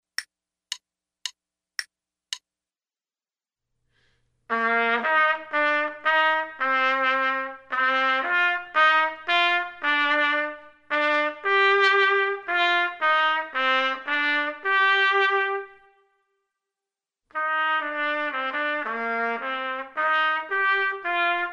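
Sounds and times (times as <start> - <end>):
trumpet: 4.5 - 16.2, 17.3 - 21.5.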